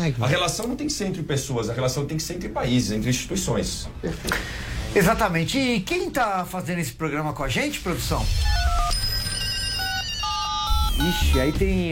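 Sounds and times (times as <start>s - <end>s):
speech: 0.0s - 8.6s, 11.0s - 11.9s
alarm ringing: 8.4s - 11.9s.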